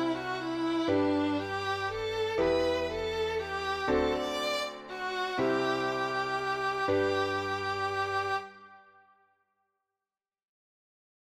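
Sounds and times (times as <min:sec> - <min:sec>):
Swedish summer waltz: 0:00.0 - 0:08.5.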